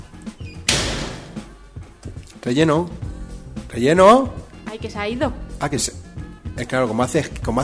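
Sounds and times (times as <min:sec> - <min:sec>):
door being opened: 0:00.0 - 0:01.6
speech: 0:02.4 - 0:03.0, 0:03.7 - 0:06.0, 0:06.6 - 0:07.6.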